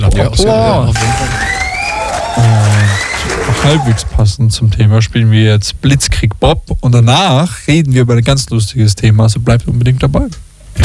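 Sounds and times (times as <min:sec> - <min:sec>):
speech: 0:00.2 - 0:01.4, 0:03.6 - 0:10.8
crowd cheering and applause: 0:00.8 - 0:04.2
whistles: 0:01.1 - 0:03.5.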